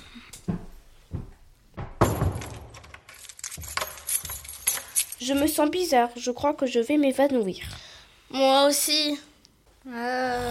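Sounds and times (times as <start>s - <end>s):
keys jingling and rattling: 2.4s - 5.7s
speech: 5.2s - 10.4s.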